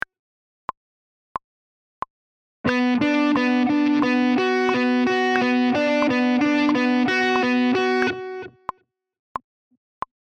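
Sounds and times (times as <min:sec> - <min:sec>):
click track: 0:02.7 - 0:08.8.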